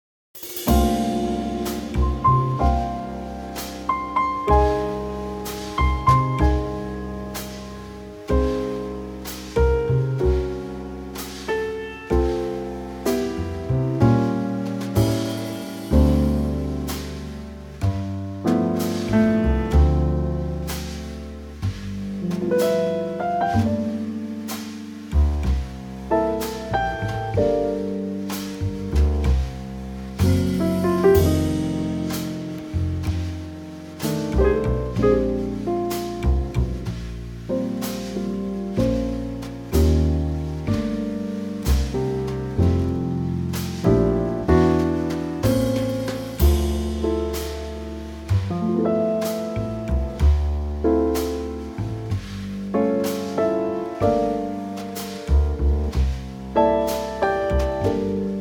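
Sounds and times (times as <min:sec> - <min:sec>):
musical trio: 0:00.4 - 0:58.3.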